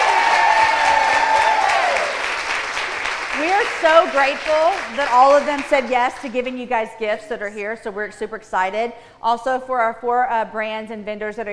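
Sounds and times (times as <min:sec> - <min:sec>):
faint cheering: 0:00.0 - 0:02.3
crowd applause: 0:00.0 - 0:06.2
speech: 0:03.8 - 0:11.5.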